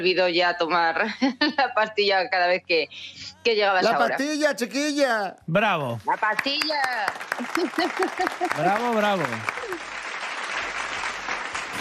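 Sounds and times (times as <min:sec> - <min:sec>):
speech: 0:00.0 - 0:09.9
small group clapping: 0:06.1 - 0:11.7
laughter: 0:07.3 - 0:09.8.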